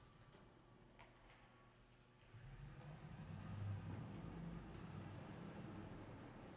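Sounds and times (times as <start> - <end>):
truck driving in parking structure: 2.4 - 6.5.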